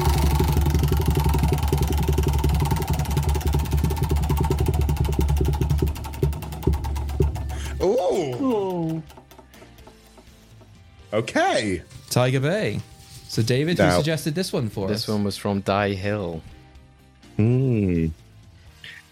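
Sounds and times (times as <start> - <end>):
spinning prize wheel clicking: 0.0 - 10.7
speech: 11.1 - 16.6, 17.4 - 18.2.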